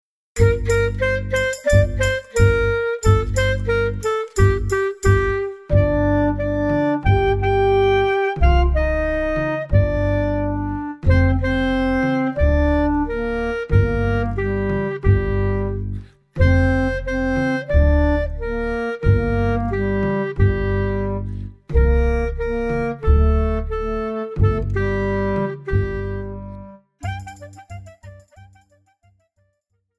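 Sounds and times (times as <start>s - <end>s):
instrumental music: 0.4s - 28.9s.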